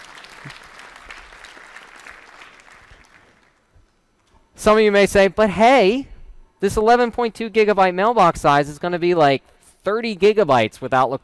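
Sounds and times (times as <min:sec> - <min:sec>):
audience golf clap: 0:00.0 - 0:03.8
speech: 0:04.6 - 0:11.2.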